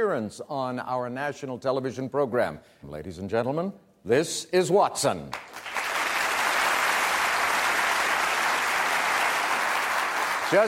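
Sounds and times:
speech: 0.0s - 5.7s
studio audience applause: 5.3s - 10.6s.

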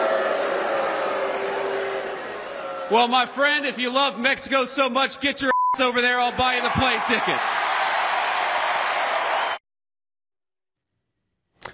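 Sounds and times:
crowd applauding at a rally: 0.0s - 3.4s, 6.1s - 9.6s
speech: 2.9s - 7.5s.

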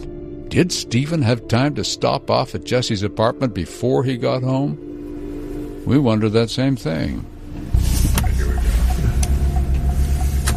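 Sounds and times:
speech: 0.5s - 4.9s, 5.8s - 8.3s
car driving away from police headquarters: 4.9s - 10.5s.

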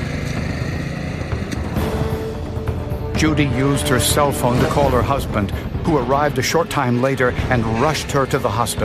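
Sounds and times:
moped engine driving away: 0.0s - 2.9s
speech: 3.2s - 8.8s.

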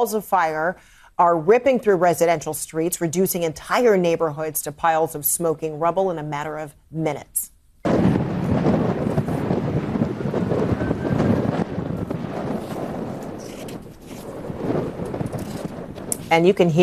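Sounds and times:
speech: 0.0s - 8.1s, 16.3s - 16.8s
ferocious howling winds: 7.9s - 16.8s.

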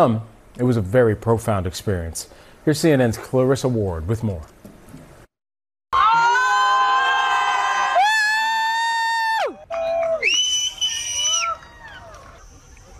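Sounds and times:
speech: 0.0s - 4.6s
crowd cheering during solar eclipse: 5.9s - 12.9s.

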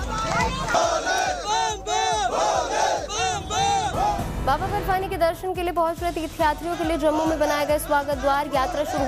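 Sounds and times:
pilgrims crowd chanting religious slogans: 0.1s - 4.3s, 6.6s - 9.0s
speech: 4.6s - 9.0s.

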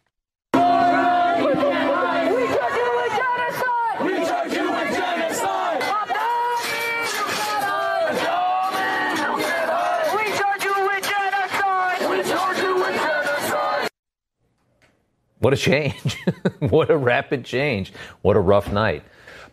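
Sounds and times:
pro-Hamas crowd yelling at Mayor Zohran Mamdani after a vigil: 0.5s - 13.9s
speech: 15.4s - 19.5s
laughter: 15.7s - 17.1s.

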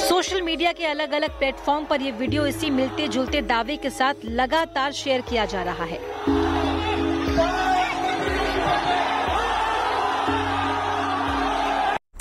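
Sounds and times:
speech: 0.3s - 6.5s
crowd chanting slogans on a bridge: 6.0s - 12.0s.

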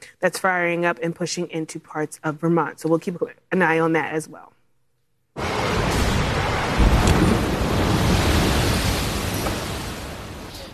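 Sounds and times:
speech: 0.2s - 4.6s
storm surge waves crashing ashore: 5.4s - 10.7s.

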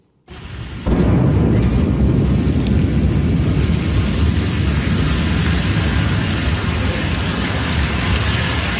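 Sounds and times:
rocket exploding in a fireball during a US launch pad test: 0.2s - 8.7s.

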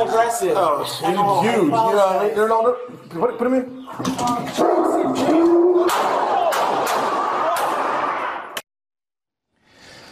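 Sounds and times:
speech: 0.2s - 6.3s
gun fired several times: 5.8s - 8.2s.

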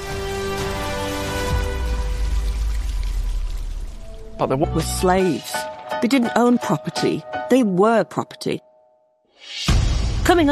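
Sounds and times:
water trickling in a fountain: 0.0s - 5.2s
speech: 4.4s - 8.7s, 10.3s - 10.4s.

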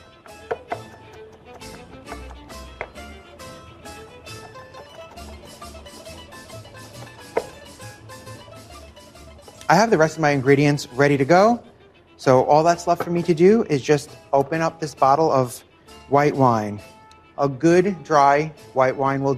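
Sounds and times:
knife mincing garlic cloves on a board: 0.5s - 3.1s, 7.0s - 7.6s
speech: 9.7s - 19.3s.

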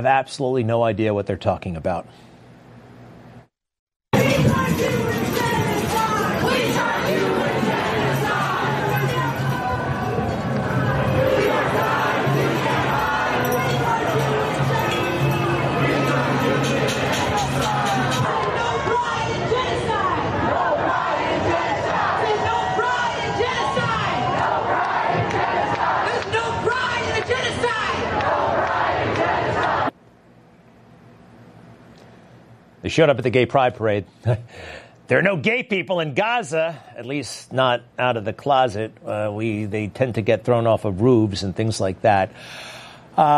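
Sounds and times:
speech: 0.0s - 2.3s, 32.9s - 43.3s
protest crowd yelling and chanting: 4.2s - 29.9s.

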